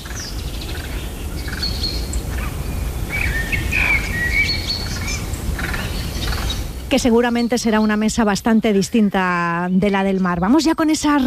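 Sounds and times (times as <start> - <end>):
birds singing at dawn: 0.0 - 11.2
speech: 6.9 - 11.2.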